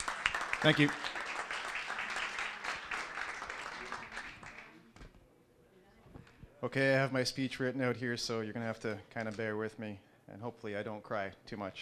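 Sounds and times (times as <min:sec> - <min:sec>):
guests applauding: 0:00.0 - 0:04.8
speech: 0:00.6 - 0:01.1, 0:06.6 - 0:11.8.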